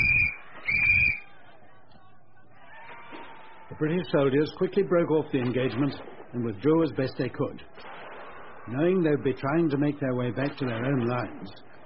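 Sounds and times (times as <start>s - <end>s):
officer's whistle blown: 0.0s - 1.3s
speech: 3.8s - 7.9s, 8.7s - 11.7s.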